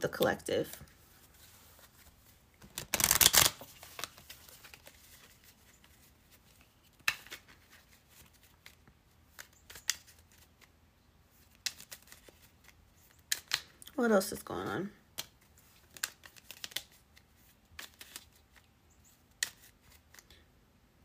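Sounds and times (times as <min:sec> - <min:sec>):
speech: 0:00.0 - 0:00.9, 0:14.0 - 0:15.0
tarot cards being shuffled: 0:00.6 - 0:10.8, 0:11.4 - 0:13.8, 0:15.1 - 0:18.7, 0:19.3 - 0:20.4
single tarot cards drawn from the deck: 0:01.9 - 0:05.4, 0:06.5 - 0:10.7, 0:11.5 - 0:13.8, 0:15.1 - 0:18.7, 0:19.3 - 0:20.4.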